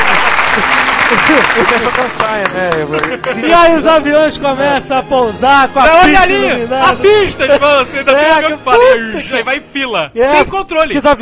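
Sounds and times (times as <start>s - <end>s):
applause: 0.0s - 3.8s
laughter: 0.0s - 4.8s, 6.1s - 9.6s
speech: 0.6s - 11.2s.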